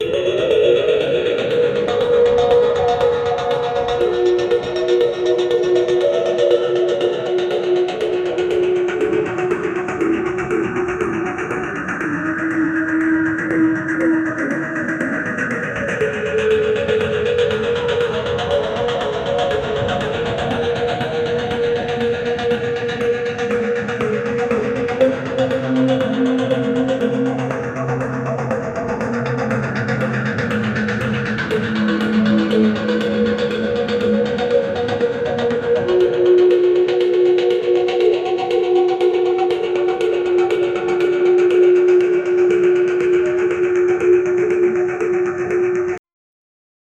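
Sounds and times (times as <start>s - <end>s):
dark unsettling psychological music: 0.0s - 46.0s.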